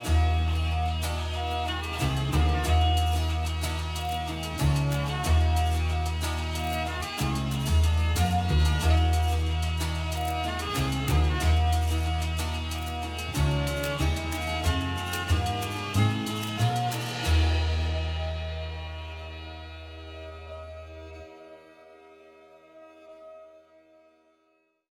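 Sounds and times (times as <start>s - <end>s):
low key positive music track: 0.0s - 21.7s.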